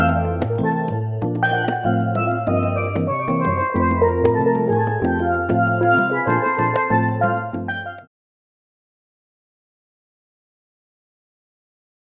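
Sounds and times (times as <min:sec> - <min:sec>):
key percussion trio: 0:00.0 - 0:08.1.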